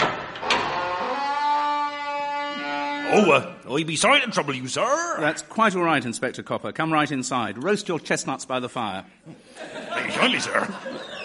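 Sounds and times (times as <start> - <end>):
door creaking: 0.0 - 3.6
speech: 3.1 - 11.2
laughter: 9.3 - 11.2.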